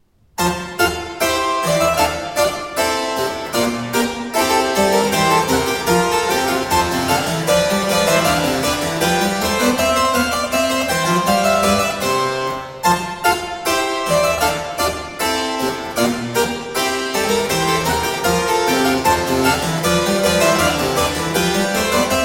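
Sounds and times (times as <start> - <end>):
gavotte from a suite in G major: 0.4 - 22.2.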